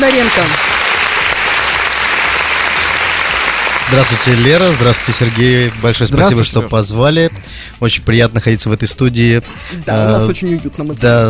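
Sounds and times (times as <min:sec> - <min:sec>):
speech: 0:00.0 - 0:00.7, 0:03.9 - 0:11.2
audience applause: 0:00.0 - 0:06.4.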